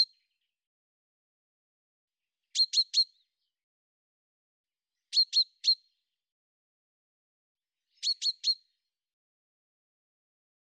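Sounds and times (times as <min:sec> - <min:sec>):
bird chirping: 0:02.5 - 0:03.3, 0:05.1 - 0:06.0, 0:07.9 - 0:08.8.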